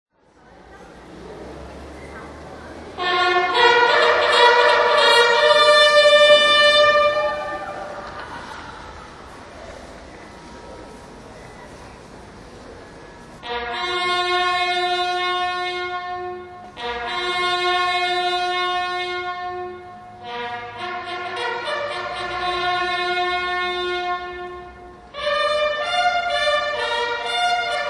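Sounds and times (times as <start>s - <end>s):
fanfare: 3.0s - 9.0s, 13.4s - 24.6s, 25.2s - 27.8s
laughter: 6.4s - 11.8s.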